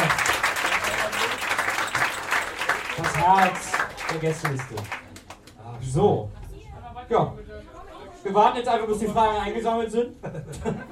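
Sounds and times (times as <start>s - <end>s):
audience applause for a thank-you: 0.0s - 5.6s
speech: 3.2s - 5.0s, 5.9s - 6.4s, 7.1s - 7.4s, 8.3s - 10.8s
laughter: 10.1s - 10.9s.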